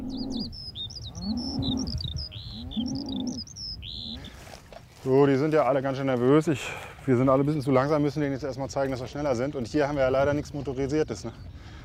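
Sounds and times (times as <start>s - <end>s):
small birds chirping: 0.0s - 11.8s
cattle herd mooing: 1.2s - 4.3s
speech: 5.0s - 11.5s.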